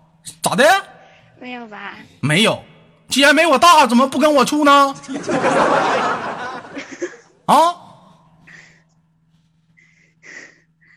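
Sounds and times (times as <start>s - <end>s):
speech: 0.4s - 6.4s, 7.5s - 7.8s
laughter: 5.0s - 7.4s
heavy breathing into microphone: 8.4s - 10.9s.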